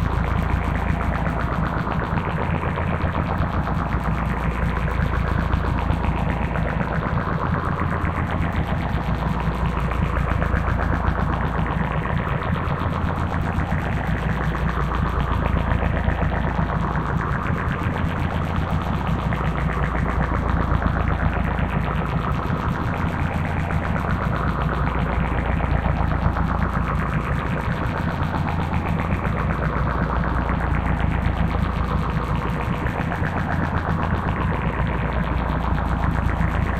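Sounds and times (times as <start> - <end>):
flanged sci-fi drone: 0.0 - 36.7.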